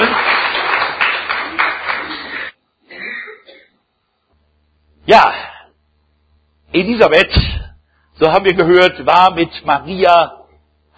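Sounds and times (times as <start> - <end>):
audience applause: 0.0 - 2.6
speech: 5.1 - 5.4, 6.8 - 10.4.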